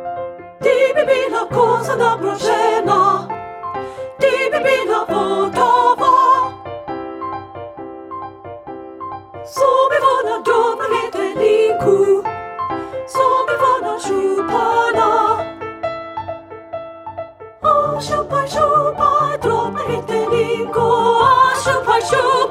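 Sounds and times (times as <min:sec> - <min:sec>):
soprano singing: 0:00.6 - 0:06.7, 0:09.5 - 0:15.7, 0:17.6 - 0:22.4.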